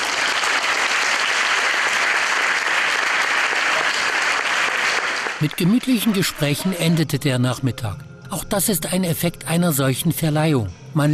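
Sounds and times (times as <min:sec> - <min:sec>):
audience applause: 0:00.0 - 0:06.6
speech: 0:05.4 - 0:11.1.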